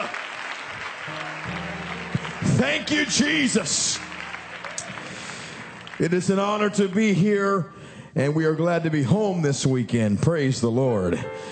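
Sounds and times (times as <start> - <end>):
audience clapping hands: 0.0 - 7.6
speech: 2.6 - 4.1, 6.0 - 11.4.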